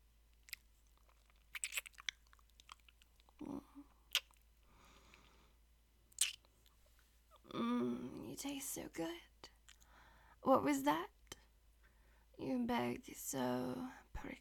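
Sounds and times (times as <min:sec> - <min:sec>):
wet licking along skin from jaw to ear: 0:00.4 - 0:03.4, 0:04.1 - 0:04.5
speech: 0:08.4 - 0:09.3, 0:10.4 - 0:11.2, 0:12.4 - 0:14.4.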